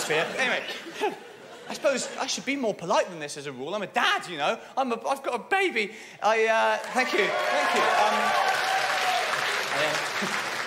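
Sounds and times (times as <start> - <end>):
laughter: 0.0 - 2.4
speech: 0.1 - 8.6
comedy club audience applause: 6.8 - 10.6.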